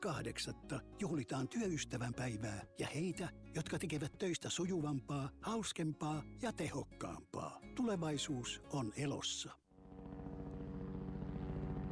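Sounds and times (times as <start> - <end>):
speech: 0.0 - 9.6
low-flying helicopter used for aerial tree trimming along power lines: 9.7 - 11.9.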